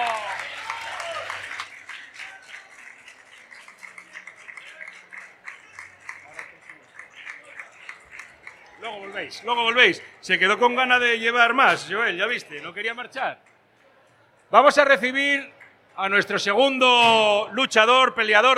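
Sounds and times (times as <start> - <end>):
audience applause: 0.0 - 10.1
speech: 9.0 - 13.5, 14.5 - 18.5.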